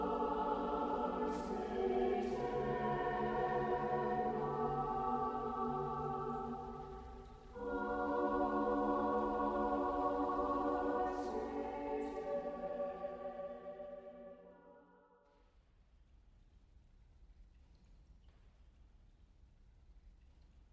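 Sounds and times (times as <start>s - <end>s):
SATB four-part choir singing: 0.0s - 14.9s.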